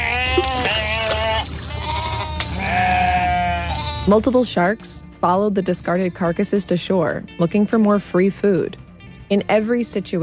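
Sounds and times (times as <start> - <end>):
sheep bleating: 0.0 - 4.3
speech: 4.1 - 10.2.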